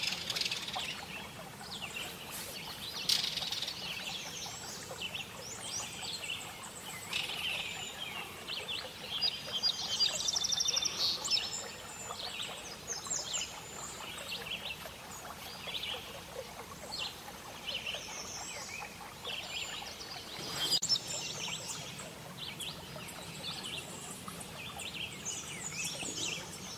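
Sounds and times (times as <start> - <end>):
background hiss: 0.0 - 26.7
birds singing a busy chorus: 0.0 - 26.7.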